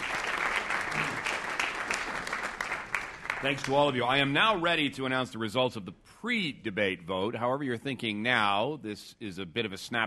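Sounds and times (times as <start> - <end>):
audience applause: 0.0 - 4.4
speech: 3.4 - 10.0.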